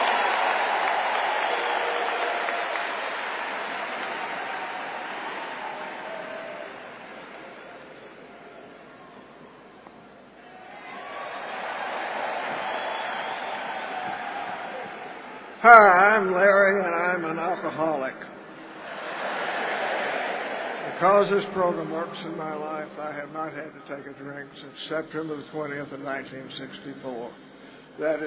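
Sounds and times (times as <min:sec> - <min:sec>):
audience applause welcoming a speaker at an alcoholics' recovery meeting: 0:00.0 - 0:08.7, 0:10.4 - 0:15.6, 0:18.7 - 0:21.0
speech: 0:15.6 - 0:18.2, 0:21.0 - 0:28.2.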